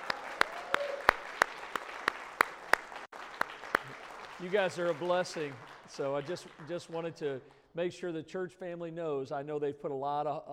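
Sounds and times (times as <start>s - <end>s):
church congregation applauding nursing graduates: 0.0s - 7.6s
speech: 4.4s - 10.5s.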